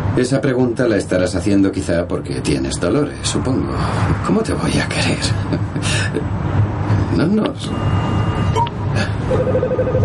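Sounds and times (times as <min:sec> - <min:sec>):
speech: 0:00.2 - 0:06.4, 0:07.2 - 0:10.0
incoming-call ringtone on a car phone: 0:07.6 - 0:10.0.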